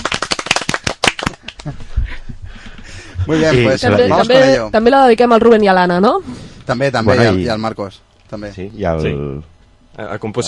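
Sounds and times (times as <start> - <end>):
audience applause: 0.0 - 1.7
speech: 1.6 - 2.1, 3.3 - 10.4.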